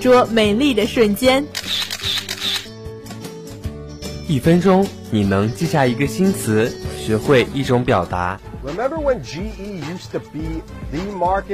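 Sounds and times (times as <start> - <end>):
speech: 0.0 - 1.9, 4.3 - 11.5
camera shutter click: 1.5 - 2.7.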